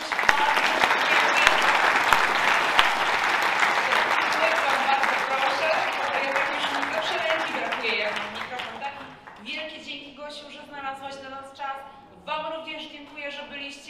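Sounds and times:
audience applause: 0.0s - 9.4s.

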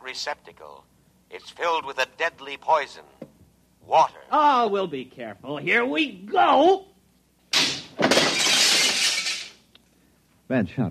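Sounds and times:
speech: 0.1s - 3.2s, 3.9s - 6.9s, 10.5s - 10.8s
glass cooling tubes shattering: 7.5s - 9.6s.

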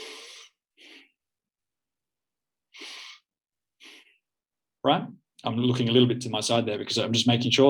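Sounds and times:
sharp nasal breaths: 0.0s - 1.1s, 2.8s - 3.2s
speech: 4.8s - 7.6s.

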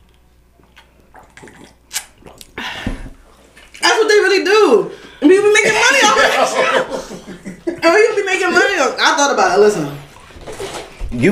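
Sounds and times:
person sipping eggnog: 0.6s - 3.8s
speech: 4.4s - 10.0s, 11.1s - 11.3s
laughter: 5.4s - 9.0s.

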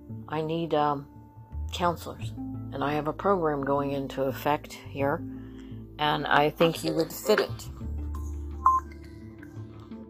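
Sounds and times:
speech: 0.3s - 1.1s, 1.7s - 5.4s, 6.0s - 7.8s
electronic alarm beep: 8.6s - 9.0s.

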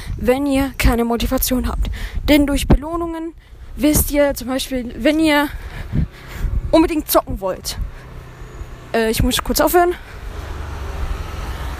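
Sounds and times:
speech: 0.2s - 6.0s, 6.7s - 7.9s, 8.9s - 10.1s
scooter driving past: 5.9s - 11.7s.

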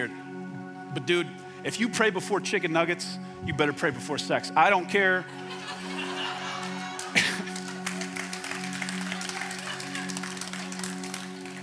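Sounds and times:
speech: 1.0s - 6.0s
laughter: 5.1s - 10.9s
audience clapping: 6.6s - 11.6s.

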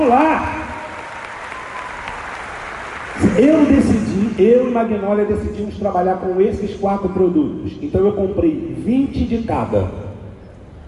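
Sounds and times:
speech: 0.1s - 0.6s, 3.4s - 10.0s
audience applause: 0.2s - 4.0s.

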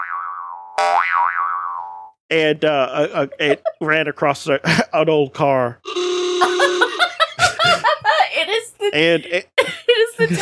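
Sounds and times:
cartoon bomb bouncing boing: 0.0s - 2.1s
speech: 1.1s - 1.6s, 2.3s - 6.5s, 8.8s - 9.5s, 10.2s - 10.3s
laughter: 3.0s - 3.9s, 6.4s - 8.4s.

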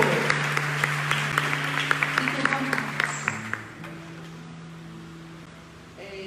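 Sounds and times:
audience applause: 0.0s - 3.8s.

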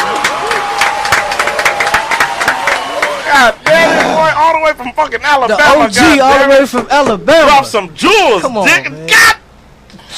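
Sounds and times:
crowd clapping: 0.0s - 4.4s
voices cheering: 0.0s - 4.7s
speech: 4.6s - 9.3s.

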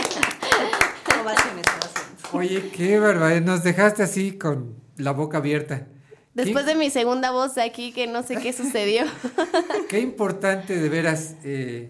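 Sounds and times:
laughter: 0.0s - 1.3s, 8.3s - 10.4s
hand clapping: 0.0s - 2.8s
speech: 1.2s - 1.7s, 2.3s - 11.8s.

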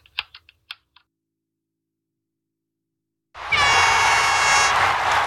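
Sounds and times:
loud siren sound effect: 3.4s - 5.1s.

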